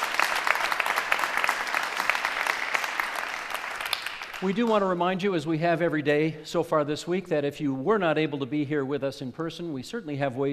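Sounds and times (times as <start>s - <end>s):
audience applauding to welcome guests at an event: 0.0s - 4.9s
speech: 4.4s - 10.5s.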